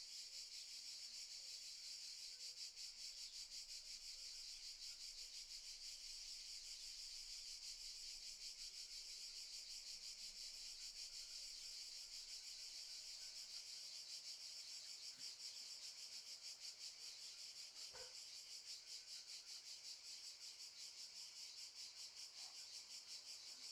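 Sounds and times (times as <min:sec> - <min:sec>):
cicadas stridulating very loudly in summer fields in the morning: 0:00.0 - 0:23.6.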